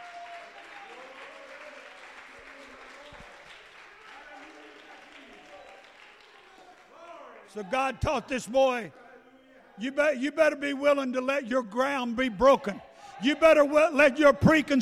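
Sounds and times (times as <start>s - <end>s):
audience clapping hands: 0.0s - 7.8s
speech: 7.5s - 9.0s, 9.8s - 14.7s.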